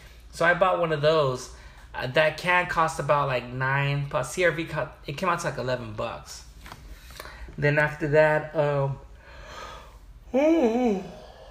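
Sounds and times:
speech: 0.4s - 6.5s, 7.5s - 9.0s, 10.3s - 11.2s
person breathing: 1.5s - 1.9s, 6.9s - 7.6s, 9.1s - 11.4s
person yawning: 9.5s - 11.4s.

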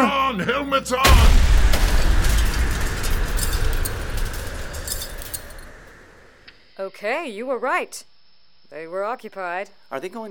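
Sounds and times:
speech: 0.0s - 1.6s, 6.8s - 8.1s, 8.7s - 10.2s
explosive charge blowing out glass: 1.0s - 6.4s
shower of glass tinkling and clinking: 2.6s - 5.8s.

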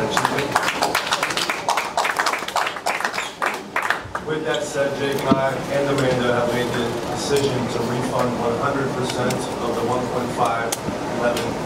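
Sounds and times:
audience applause: 0.0s - 4.3s
speech: 4.5s - 11.6s.

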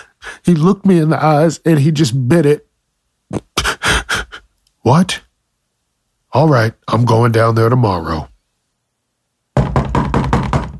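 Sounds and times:
speech: 0.5s - 2.7s, 4.8s - 5.3s, 6.3s - 8.3s
knocking on a wooden door: 9.6s - 10.7s.

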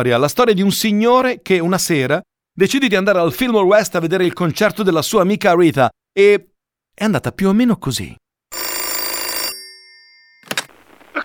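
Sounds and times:
speech: 0.0s - 8.2s
telephone bell ringing: 8.5s - 10.9s.

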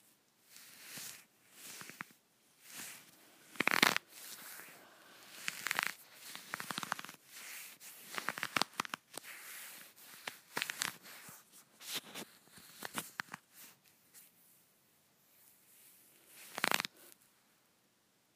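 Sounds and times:
leggings fabric scratched and rubbed: 0.5s - 13.2s, 16.3s - 16.9s.

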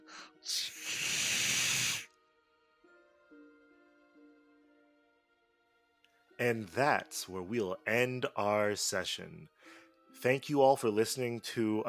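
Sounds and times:
person voicing a snake-like hiss: 0.0s - 2.2s
speech: 0.4s - 0.6s, 6.4s - 9.6s, 10.2s - 11.8s.

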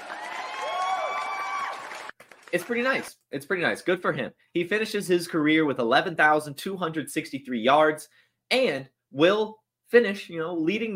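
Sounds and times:
applause: 0.0s - 3.1s
speech: 2.5s - 10.9s.

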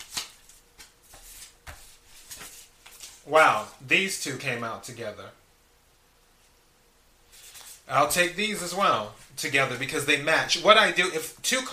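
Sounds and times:
cards being shuffled during a card reading: 0.0s - 3.8s, 7.3s - 7.9s
speech: 3.3s - 5.4s, 7.9s - 11.7s.

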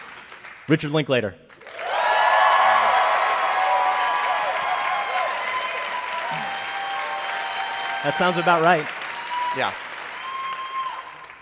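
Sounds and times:
speech: 0.7s - 1.4s, 8.0s - 9.8s
audience applause: 1.6s - 11.3s.

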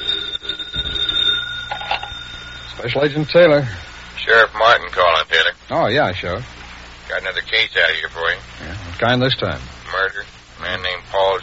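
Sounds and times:
telephone ringing with a shrill bell-like tone: 0.0s - 5.3s
speech: 2.8s - 11.4s.

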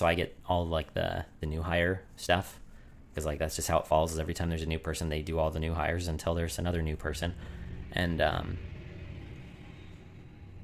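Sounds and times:
speech: 0.0s - 2.6s, 3.2s - 8.7s
loud diesel truck passing: 5.9s - 10.6s.

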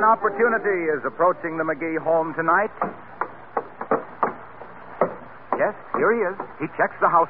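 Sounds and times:
speech: 0.1s - 3.2s, 5.6s - 7.2s
hollow knocks on a house door: 2.8s - 6.6s.

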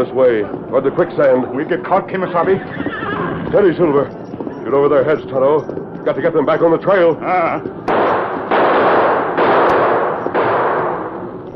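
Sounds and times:
speech: 0.0s - 7.8s
gunshots: 7.9s - 11.5s.

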